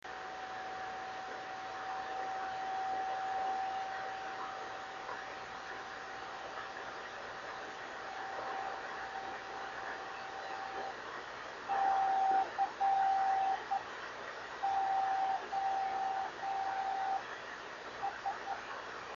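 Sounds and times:
driftnet beacons: 0.9 - 18.8.

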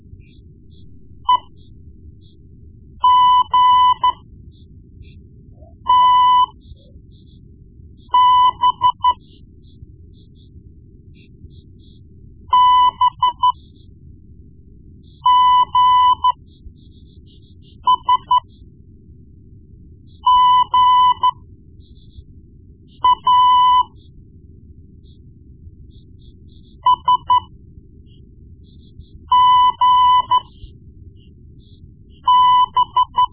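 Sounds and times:
morse code beeps: 0.7 - 1.7, 3.0 - 4.2, 5.2 - 6.9, 8.1 - 9.3, 12.5 - 13.6, 15.1 - 16.4, 17.3 - 18.5, 20.2 - 21.4, 23.0 - 24.0, 26.6 - 27.5, 29.3 - 30.7, 32.2 - 33.3.

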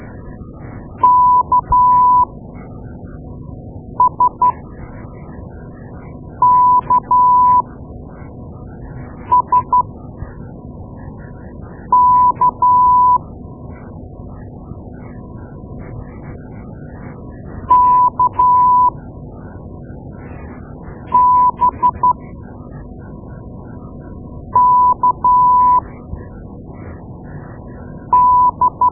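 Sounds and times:
morse code beeps: 1.0 - 2.3, 4.0 - 4.6, 6.4 - 7.7, 9.3 - 9.9, 11.9 - 13.2, 17.7 - 18.9, 21.1 - 22.2, 24.6 - 25.8, 28.1 - 28.9.

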